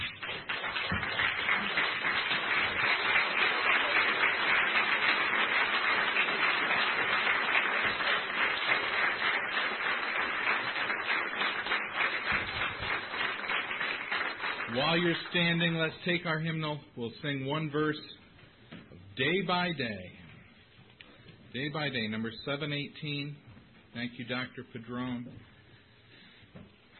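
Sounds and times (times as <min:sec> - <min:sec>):
audience applauding: 0:00.0 - 0:15.8
speech: 0:15.0 - 0:18.2, 0:19.2 - 0:20.1, 0:21.5 - 0:25.5.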